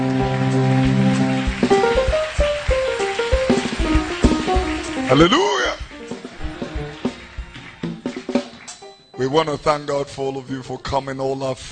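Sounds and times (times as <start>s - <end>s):
applause: 0.0s - 9.0s
speech: 5.1s - 5.6s, 9.2s - 11.7s.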